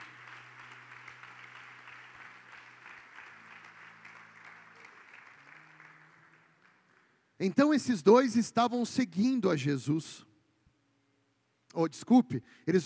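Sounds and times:
audience applauding: 0.0 - 7.2
speech: 7.4 - 10.3, 11.8 - 12.8.

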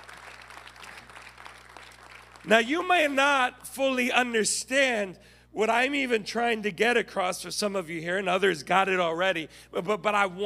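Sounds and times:
audience applause: 0.0 - 2.5
speech: 2.4 - 10.4.

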